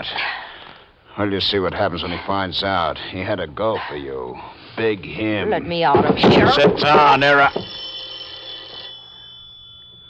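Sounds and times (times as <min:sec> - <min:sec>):
speech: 0:00.0 - 0:00.3, 0:01.2 - 0:07.8
faint steady hum: 0:00.0 - 0:10.0
telephone bell ringing: 0:06.0 - 0:10.0.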